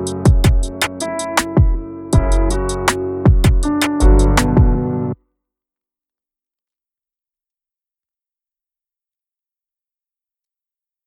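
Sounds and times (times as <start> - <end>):
melancholic hip-hop: 0.0 - 5.0.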